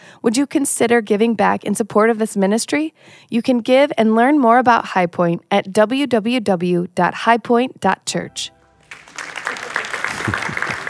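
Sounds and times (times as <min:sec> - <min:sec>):
speech: 0:00.2 - 0:08.6, 0:10.3 - 0:10.6
applause from an audience member: 0:08.8 - 0:10.8.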